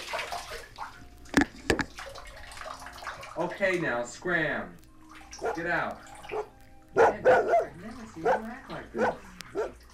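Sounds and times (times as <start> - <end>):
dog splashing water in bathtub: 0.0 - 1.2, 1.9 - 3.6, 5.1 - 9.9
speech: 3.4 - 4.8, 5.4 - 6.5, 7.1 - 7.6, 8.2 - 9.2.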